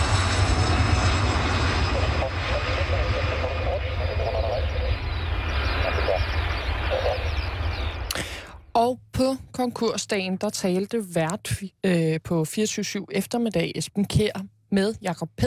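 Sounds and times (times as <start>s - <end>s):
Kemper Sterling airplane flight Q1-784 taking off: 0.0s - 8.7s
faint voices murmuring: 1.8s - 5.0s, 5.7s - 7.4s
speech: 8.9s - 15.4s.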